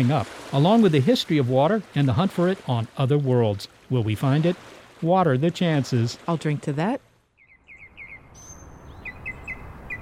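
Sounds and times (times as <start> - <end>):
speech: 0.0 - 7.1
birds calling in a wetland: 7.4 - 10.0.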